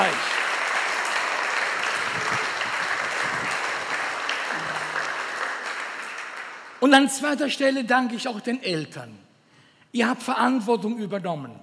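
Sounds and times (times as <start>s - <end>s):
audience applause: 0.0s - 6.8s
speech: 6.8s - 9.2s, 9.9s - 11.6s.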